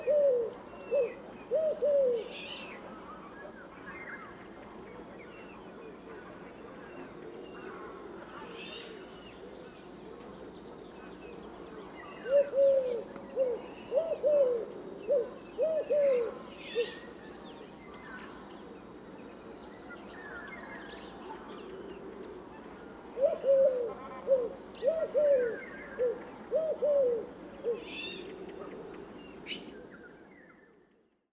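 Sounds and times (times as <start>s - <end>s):
Eurasian collared dove Streptopelia decaocto: 0.0s - 3.0s, 12.1s - 17.2s, 21.3s - 29.9s.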